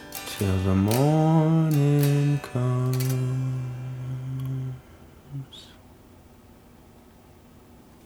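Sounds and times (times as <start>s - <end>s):
lullaby music: 0.0s - 5.0s.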